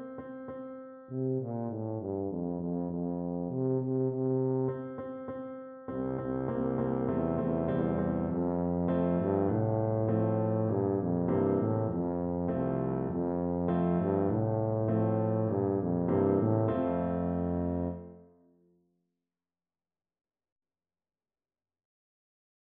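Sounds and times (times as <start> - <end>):
tuba playing a folk tune: 1.1 - 5.0, 5.9 - 18.2.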